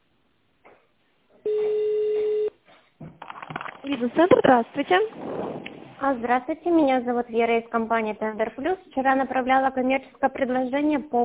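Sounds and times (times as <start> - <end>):
telephone ringing tone over a thin phone line: 1.5 - 2.5
speech: 3.8 - 5.4, 6.0 - 11.2.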